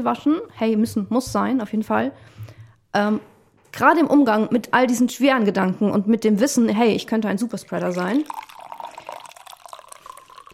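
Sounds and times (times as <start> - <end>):
speech: 0.0 - 8.4
coffee pouring: 7.4 - 10.5.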